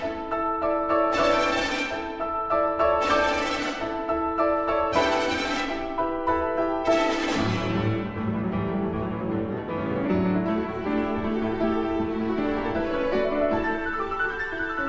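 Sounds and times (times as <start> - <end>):
piano concerto music: 0.0 - 14.8.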